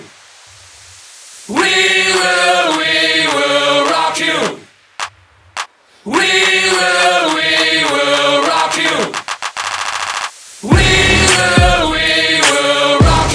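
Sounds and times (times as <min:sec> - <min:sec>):
epic hip hop beat at 105 BPM: 0:01.6 - 0:05.1, 0:06.2 - 0:13.2.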